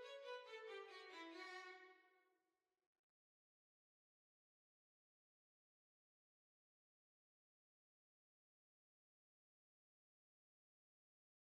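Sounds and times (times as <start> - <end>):
violin playing a reel: 0.0 - 1.9.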